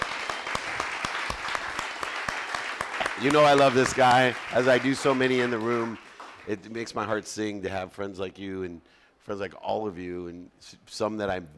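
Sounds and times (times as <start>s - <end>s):
audience applause: 0.0s - 6.7s
speech: 3.2s - 11.5s.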